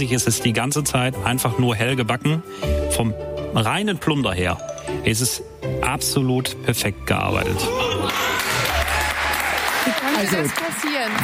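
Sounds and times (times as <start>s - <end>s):
speech: 0.0s - 8.2s, 10.2s - 11.2s
crowd applauding: 7.8s - 11.2s.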